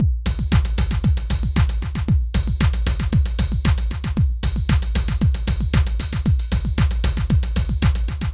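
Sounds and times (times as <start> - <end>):
dance drum loop: 0.0 - 8.3.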